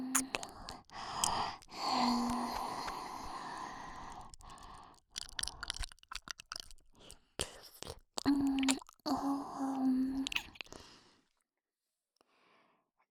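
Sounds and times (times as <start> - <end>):
ear licking sounds: 0.1 - 9.2, 10.1 - 10.9.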